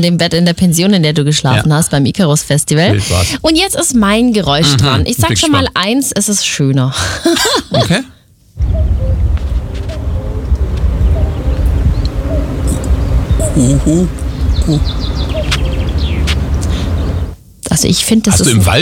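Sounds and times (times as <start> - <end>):
speech: 0.0 - 9.4, 13.6 - 15.2, 17.8 - 18.8
steady outdoor hiss: 0.0 - 18.8
laughter: 2.9 - 3.3, 7.0 - 8.1
common cuckoo calling in forest: 8.6 - 17.4
small birds chirping: 8.6 - 18.6.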